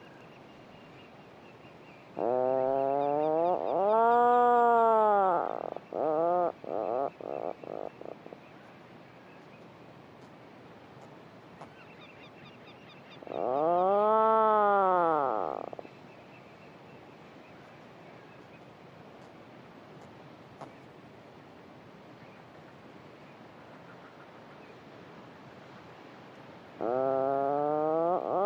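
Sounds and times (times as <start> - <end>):
puffins calling from within their burrows with deep rolling droning: 2.1 - 8.5, 11.6 - 16.0, 26.8 - 28.4.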